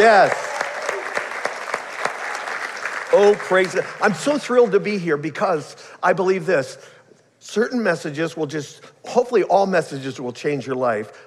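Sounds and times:
speech: 0.0 - 0.4, 3.1 - 11.2
audience applause: 0.0 - 4.5.

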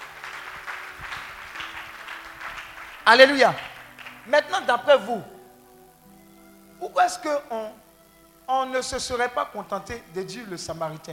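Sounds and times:
faint church congregation applause during a sermon: 0.0 - 5.1
speech: 3.1 - 3.7, 4.3 - 5.3, 6.8 - 7.8, 8.5 - 11.1.

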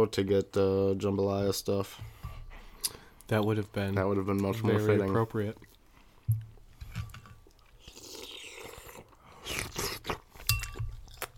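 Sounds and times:
speech: 0.0 - 2.2, 2.8 - 5.7
chewing food close to the microphone: 4.3 - 11.3.

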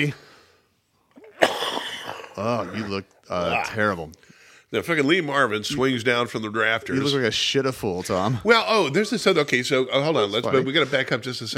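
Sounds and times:
speech: 0.0 - 0.2, 2.4 - 11.5
heavy coughing: 1.2 - 3.9.

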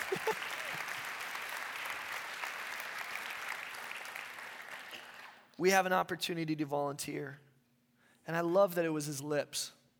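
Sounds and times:
laughter: 0.0 - 0.9
audience clapping: 0.0 - 5.4
speech: 5.6 - 7.4, 8.3 - 9.8.

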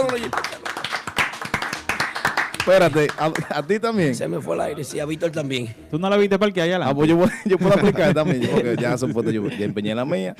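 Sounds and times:
applause: 0.0 - 3.7
speech: 2.6 - 10.3
laughter: 7.1 - 10.3.

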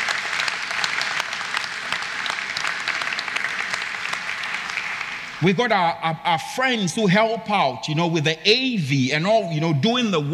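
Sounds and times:
audience applause: 0.0 - 5.4
speech: 5.4 - 10.3.

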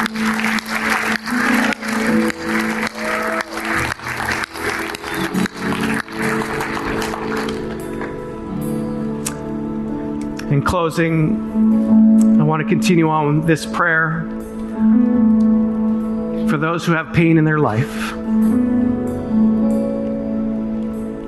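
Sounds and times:
audience applause: 0.0 - 8.2
soft sustained musical tones: 0.0 - 21.2
speech: 10.7 - 15.3, 16.5 - 18.2.

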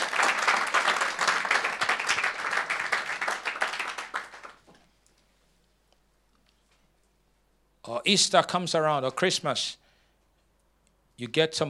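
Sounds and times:
audience clapping: 0.0 - 4.6
speech: 7.9 - 9.8, 11.2 - 11.6.

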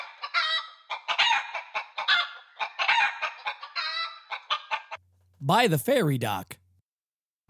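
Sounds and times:
flock of hens clucking and cackling: 0.0 - 5.0
speech: 5.4 - 6.6.

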